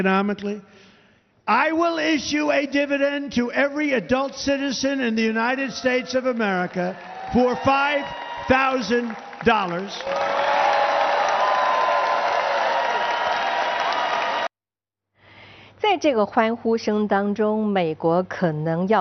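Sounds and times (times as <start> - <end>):
speech: 0.0 - 0.9, 1.5 - 10.6, 15.8 - 19.0
large crowd cheering and applauding: 5.5 - 14.6.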